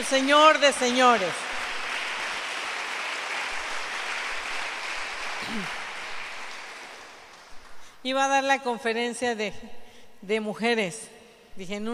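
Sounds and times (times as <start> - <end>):
speech: 0.0 - 1.4, 5.5 - 5.8, 8.0 - 11.9
audience applauding: 0.0 - 7.9.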